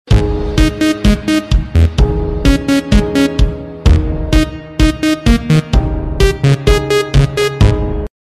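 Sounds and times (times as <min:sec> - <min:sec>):
electro music: 0:00.1 - 0:08.1.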